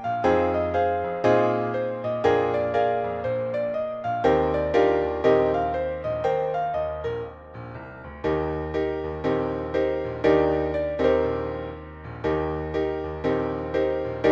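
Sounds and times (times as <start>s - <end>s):
piano note Eb: 0.0s - 14.3s.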